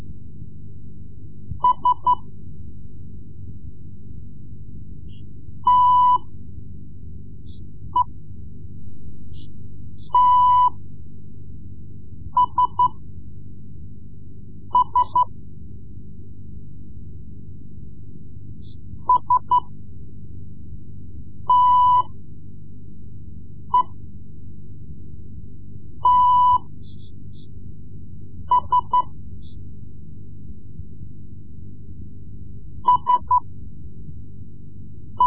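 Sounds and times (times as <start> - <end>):
Morse code lessons: 1.6 - 2.3, 5.7 - 6.3, 10.1 - 10.8, 12.4 - 13.0, 14.8 - 15.3, 19.0 - 19.7, 21.5 - 22.2, 26.0 - 26.7, 28.5 - 29.1, 32.9 - 33.4.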